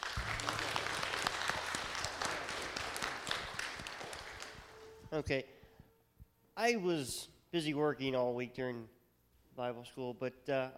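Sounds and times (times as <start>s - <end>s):
audience applause: 0.0s - 5.0s
speech: 5.1s - 5.6s, 6.6s - 9.0s, 9.6s - 10.7s.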